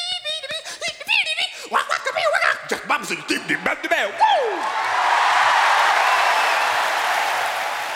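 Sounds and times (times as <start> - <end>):
laughter: 0.0 - 6.8
thunderous applause from a concert audience: 2.8 - 7.9.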